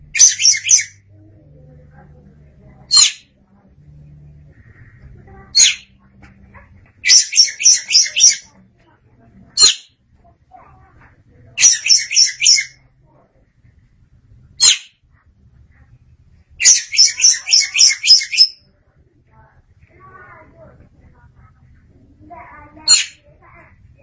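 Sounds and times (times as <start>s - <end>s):
Oriental magpie-robin song: 0.1s - 1.0s, 2.9s - 3.3s, 5.6s - 6.0s, 7.0s - 8.5s, 11.6s - 12.8s, 14.6s - 14.9s, 16.6s - 18.6s, 22.8s - 23.3s.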